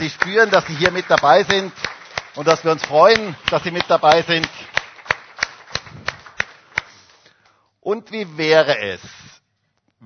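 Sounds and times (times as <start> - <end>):
speech: 0.0 - 1.8, 2.4 - 4.6, 7.9 - 9.2
rhythmic audience applause: 0.0 - 7.4.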